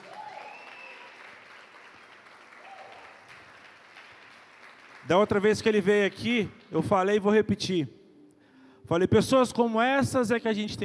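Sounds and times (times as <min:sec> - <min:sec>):
audience applauding: 0:00.0 - 0:06.2
speech: 0:05.0 - 0:08.0, 0:08.9 - 0:10.8.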